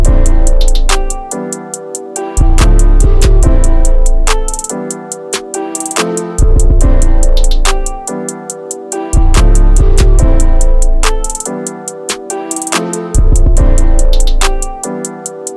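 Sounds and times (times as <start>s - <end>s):
trap instrumental beat: 0.0s - 15.5s.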